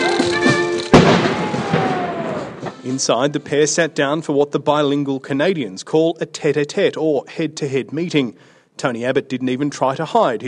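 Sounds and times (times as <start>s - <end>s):
ceremonial cannon fire from a 19-gun salute at Parliament Hill: 0.9s - 3.0s
speech: 2.9s - 10.4s.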